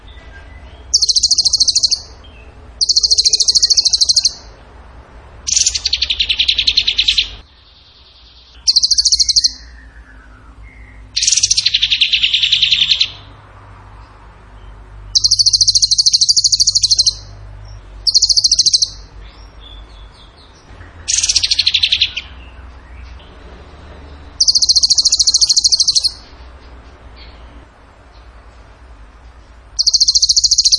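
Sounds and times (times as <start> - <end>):
bird trilling: 0.8 - 4.5, 5.5 - 7.5, 8.4 - 13.3, 15.1 - 17.3, 18.0 - 22.6, 24.3 - 26.4, 29.8 - 30.7.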